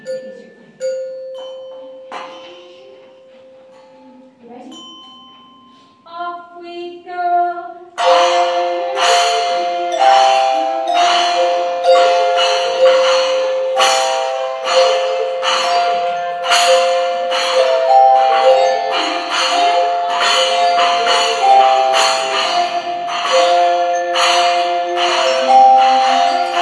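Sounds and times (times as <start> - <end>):
instrumental end of year concert music: 8.0 - 26.6.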